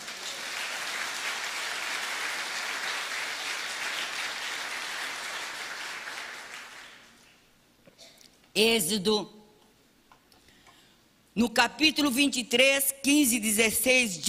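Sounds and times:
audience applauding: 0:00.0 - 0:07.2
speech: 0:08.6 - 0:09.4, 0:11.4 - 0:14.2.

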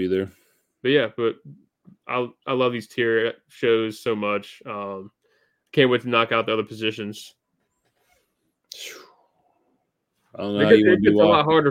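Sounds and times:
speech: 0:00.0 - 0:07.4, 0:08.7 - 0:09.0, 0:10.4 - 0:11.7
sneeze: 0:08.7 - 0:09.1.

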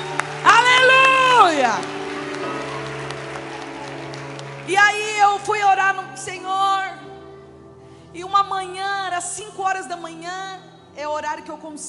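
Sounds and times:
audience applause: 0:00.0 - 0:05.6
speech: 0:04.7 - 0:07.0, 0:08.1 - 0:11.8.

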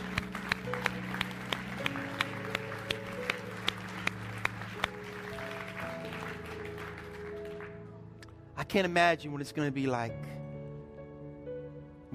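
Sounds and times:
audience clapping in rhythm: 0:00.0 - 0:08.3
speech: 0:08.7 - 0:10.4.

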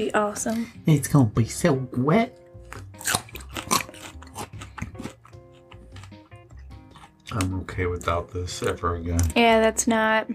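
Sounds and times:
speech: 0:00.0 - 0:02.8, 0:07.4 - 0:10.3
chewing raw broccoli: 0:02.6 - 0:09.4.

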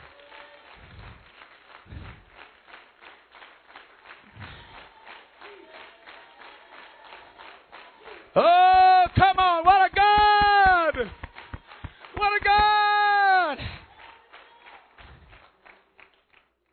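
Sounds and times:
audience clapping hands: 0:00.0 - 0:16.7
speech: 0:08.4 - 0:08.6.

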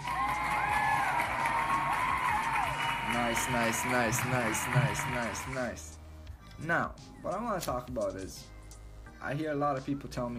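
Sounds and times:
audience clapping and cheering: 0:00.0 - 0:06.0
speech: 0:03.3 - 0:06.0, 0:06.6 - 0:08.5, 0:09.2 - 0:10.3.

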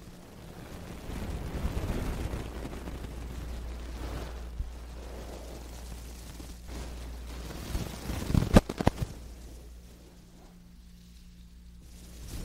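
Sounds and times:
low hum: 0:00.0 - 0:12.4
wooden ear pick scraping in ear cleaning: 0:02.4 - 0:12.4
sharp clicks and pops: 0:07.7 - 0:09.3.

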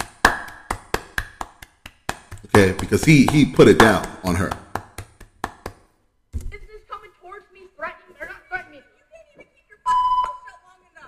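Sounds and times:
audience clapping: 0:00.0 - 0:05.9
speech: 0:02.6 - 0:04.6.

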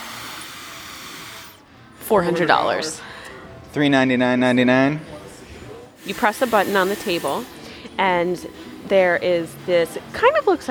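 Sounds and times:
hair dryer blowing: 0:00.0 - 0:01.6, 0:06.0 - 0:07.6
speech: 0:02.1 - 0:03.1, 0:03.7 - 0:05.1, 0:06.0 - 0:10.6.

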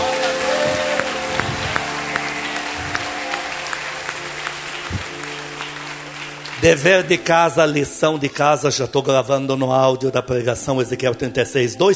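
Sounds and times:
audience applause: 0:00.0 - 0:07.8
speech: 0:06.6 - 0:11.9.

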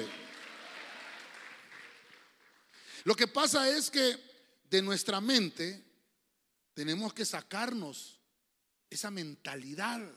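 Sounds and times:
audience applauding: 0:00.0 - 0:03.0
speech: 0:03.0 - 0:05.9, 0:06.8 - 0:08.2, 0:08.9 - 0:10.1.

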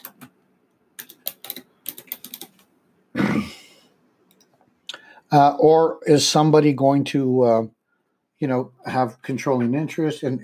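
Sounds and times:
typing on a computer keyboard: 0:00.0 - 0:00.3, 0:01.0 - 0:02.6
speech: 0:05.3 - 0:07.8, 0:08.4 - 0:10.4.

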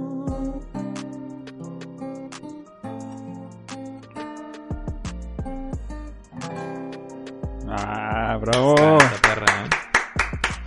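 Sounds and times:
speech: 0:07.7 - 0:09.5
hand clapping: 0:07.8 - 0:10.6.

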